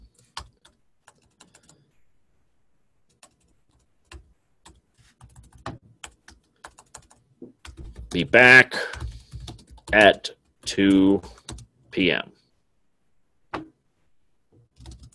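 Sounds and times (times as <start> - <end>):
typing on a computer keyboard in a text editor: 0.0 - 1.9, 3.1 - 11.7, 14.6 - 15.1
speech: 8.1 - 8.7, 10.0 - 10.2, 10.8 - 11.3.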